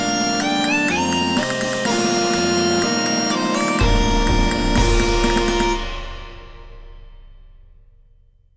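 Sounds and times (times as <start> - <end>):
bagpipe band: 0.0 - 6.4.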